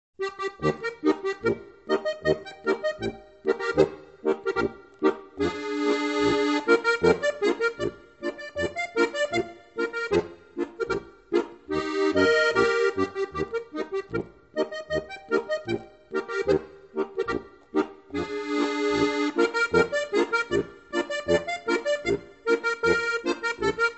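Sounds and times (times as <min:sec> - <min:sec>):
Bavarian boarischer folk dance music: 0:00.2 - 0:23.9.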